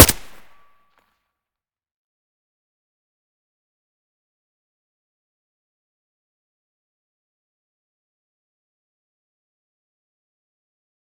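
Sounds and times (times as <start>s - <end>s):
AK-74U rifle firing with silencer: 0.0s - 0.6s.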